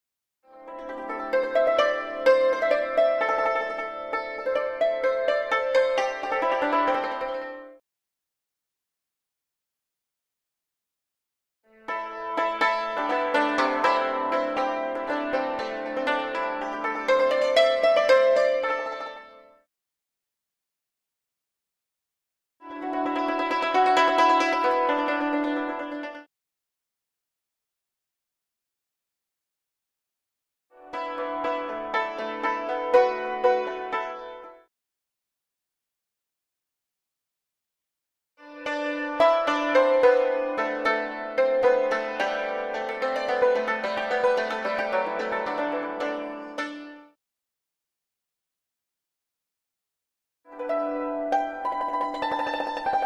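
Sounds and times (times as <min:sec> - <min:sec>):
Asian yangqin hammered dulcimer: 0:00.6 - 0:07.8, 0:11.9 - 0:19.4, 0:22.6 - 0:26.3, 0:30.9 - 0:34.6, 0:38.5 - 0:47.2, 0:50.5 - 0:53.0.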